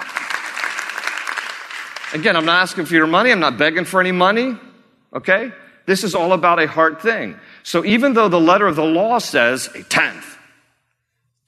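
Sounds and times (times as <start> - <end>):
audience applause: 0.0 - 2.8
speech: 2.1 - 10.4.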